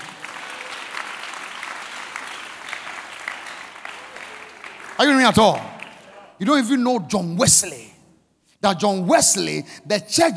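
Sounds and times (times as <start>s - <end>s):
crowd applauding: 0.0s - 6.4s
speech: 5.0s - 5.7s, 6.4s - 8.0s, 8.6s - 10.3s.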